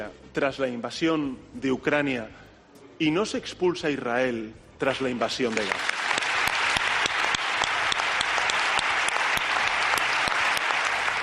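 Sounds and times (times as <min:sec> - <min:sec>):
speech: 0:00.0 - 0:02.4, 0:03.0 - 0:06.0
audience applause: 0:05.5 - 0:11.2.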